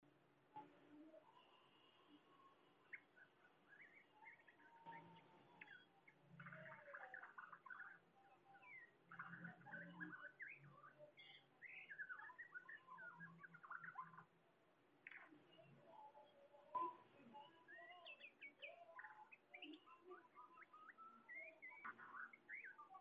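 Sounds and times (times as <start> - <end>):
birds singing together with warbled and whistled phrases: 0.6 - 22.9.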